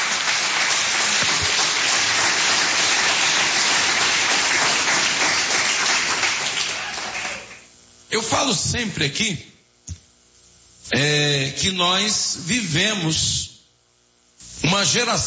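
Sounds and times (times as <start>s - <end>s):
audience applause: 0.0s - 7.7s
speech: 8.1s - 9.5s, 10.9s - 13.4s, 14.8s - 15.2s.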